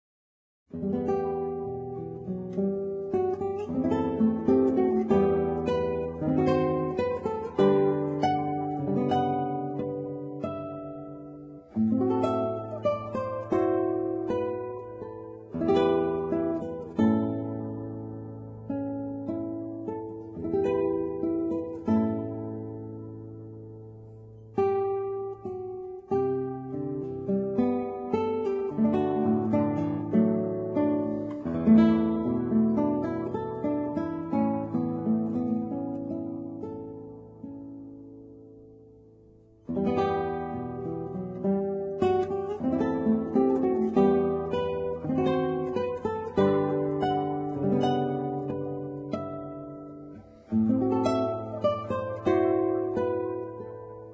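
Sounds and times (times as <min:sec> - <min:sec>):
acoustic guitar: 0:00.7 - 0:54.1.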